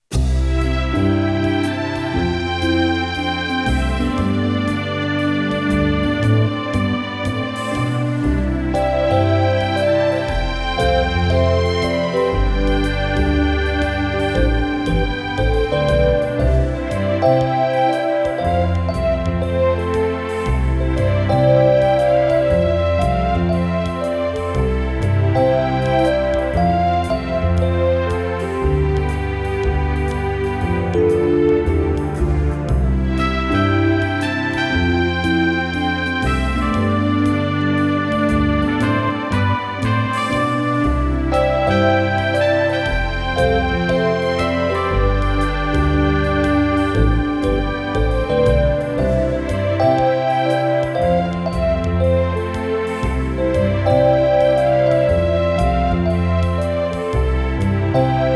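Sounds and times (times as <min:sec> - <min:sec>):
background music: 0:00.1 - 0:58.3.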